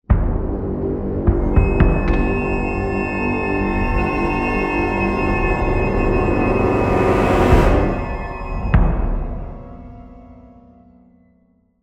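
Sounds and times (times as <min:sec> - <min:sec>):
cage fall music: 0:00.1 - 0:11.5.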